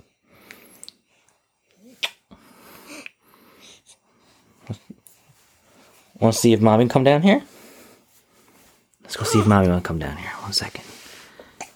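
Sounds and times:
speech: 6.2 - 7.5, 9.3 - 10.9
baby hiccuping: 9.2 - 9.7.

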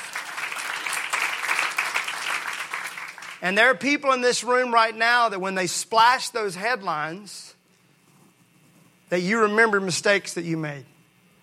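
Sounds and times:
audience applause: 0.0 - 3.4
speech: 3.4 - 7.6, 9.1 - 10.9.

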